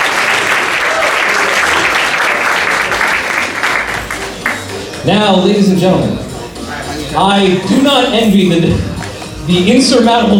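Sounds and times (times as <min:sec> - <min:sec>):
audience applause: 0:00.0 - 0:04.7
speech: 0:05.0 - 0:06.2, 0:07.2 - 0:08.9, 0:09.5 - 0:10.3.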